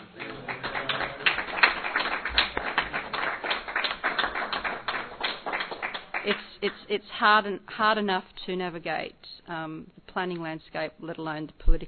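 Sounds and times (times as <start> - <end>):
round of applause: 0.0 - 6.7
speech: 6.3 - 11.8.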